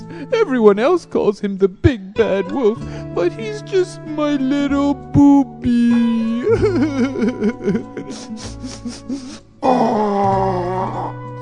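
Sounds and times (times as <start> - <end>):
speech: 0.2 - 11.2
laughter: 6.4 - 9.4
nose blowing: 7.9 - 11.4.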